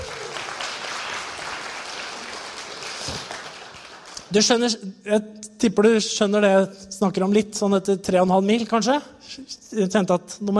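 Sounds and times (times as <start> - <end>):
applause: 0.0 - 4.5
speech: 4.3 - 10.5.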